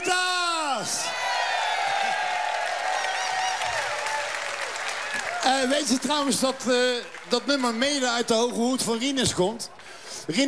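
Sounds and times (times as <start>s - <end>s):
audience applause and cheering: 0.0s - 9.2s
speech: 5.4s - 10.4s.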